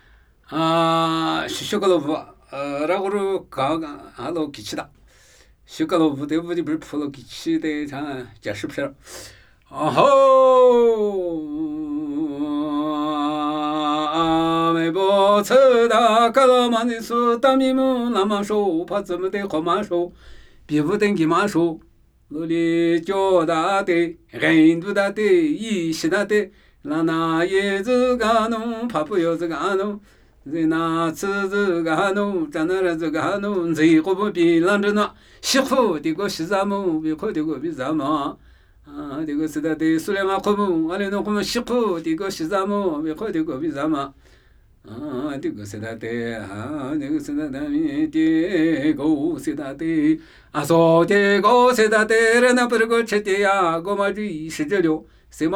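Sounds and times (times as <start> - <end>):
Namuyi Tibetan ritual chanting: 0.0 - 55.5.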